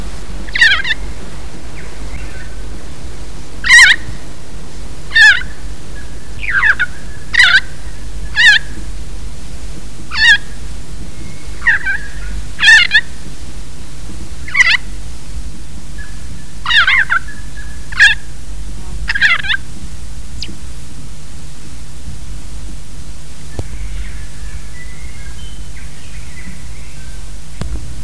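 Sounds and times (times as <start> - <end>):
low steady hum: 0.0 - 28.0
Kaka harsh warbling squawks: 0.5 - 1.0, 3.6 - 4.1, 5.1 - 5.5, 10.1 - 10.5, 11.6 - 13.1, 19.1 - 19.6.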